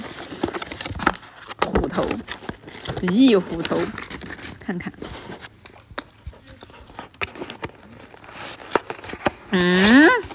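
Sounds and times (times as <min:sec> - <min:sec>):
snack package plastic wrapper crinkling and tearing: 0:00.0 - 0:10.3
speech: 0:02.0 - 0:02.4, 0:03.0 - 0:04.0, 0:04.7 - 0:05.1, 0:09.5 - 0:10.2.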